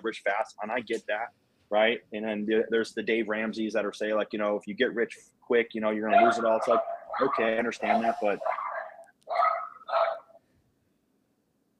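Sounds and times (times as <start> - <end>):
speech: 0.0 - 8.6
dogs making noise in the house: 6.1 - 10.4.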